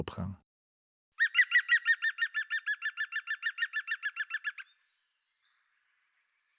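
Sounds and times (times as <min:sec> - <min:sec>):
European green woodpecker laughing series of ringing notes: 0:01.2 - 0:04.8.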